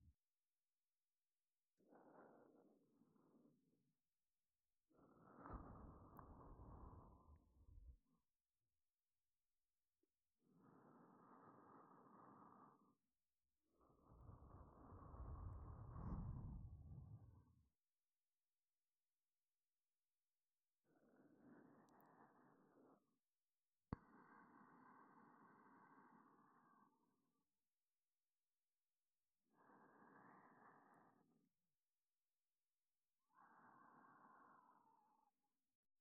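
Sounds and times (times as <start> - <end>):
breathing in the left ear: 1.8 - 3.6, 4.9 - 8.1, 10.5 - 17.5, 20.9 - 23.2, 23.9 - 27.5, 29.5 - 31.6, 33.2 - 35.5.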